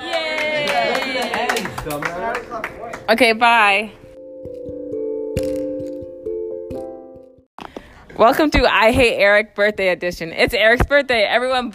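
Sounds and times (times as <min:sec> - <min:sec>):
audience clapping: 0:00.0 - 0:03.2
speech: 0:01.8 - 0:04.0, 0:08.2 - 0:11.7.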